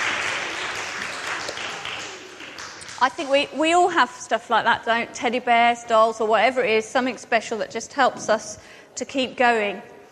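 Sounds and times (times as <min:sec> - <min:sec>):
audience applause: 0:00.0 - 0:03.2
speech: 0:03.0 - 0:09.9.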